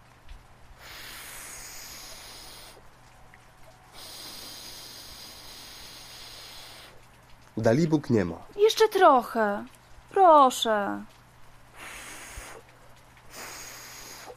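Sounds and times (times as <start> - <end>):
person blowing on dying fire embers: 0.8 - 2.9, 3.9 - 7.1, 11.7 - 14.3
speech: 7.6 - 11.2.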